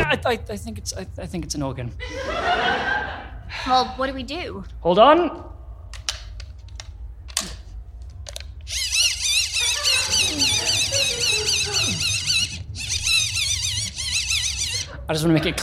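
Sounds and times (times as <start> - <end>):
speech: 0.1 - 2.9, 3.5 - 5.5, 15.1 - 15.6
laughter: 2.0 - 3.6, 9.4 - 12.6, 14.6 - 15.6
wind-up torch being cranked: 8.6 - 15.0.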